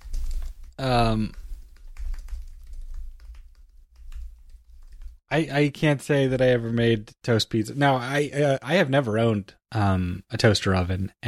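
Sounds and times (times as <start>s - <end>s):
speech: 0.8s - 1.4s, 5.3s - 11.2s
typing on a computer keyboard: 1.7s - 5.2s.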